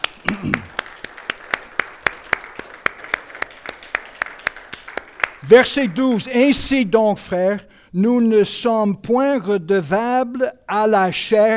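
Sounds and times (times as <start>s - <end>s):
audience applauding: 0.0s - 6.2s
speech: 5.5s - 11.5s.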